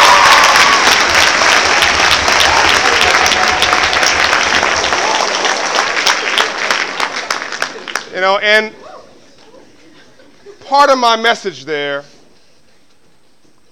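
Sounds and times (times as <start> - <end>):
audience applause: 0.0 - 8.1
speech: 8.3 - 8.8, 10.7 - 12.1.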